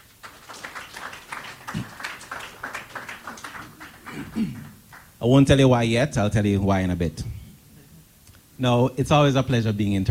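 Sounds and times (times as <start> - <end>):
audience applause: 0.0 - 5.2
speech: 4.4 - 7.3, 8.6 - 10.0.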